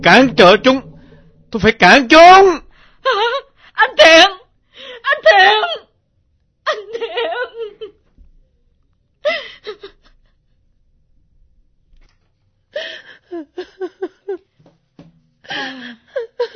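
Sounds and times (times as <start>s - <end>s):
speech: 0.0s - 0.9s, 1.5s - 4.4s, 5.0s - 5.9s, 6.7s - 8.0s, 12.8s - 14.1s, 15.5s - 16.5s
mother crying in whimpering sobs: 3.0s - 5.8s, 6.7s - 8.0s, 9.2s - 10.4s, 12.8s - 14.4s, 15.5s - 16.5s.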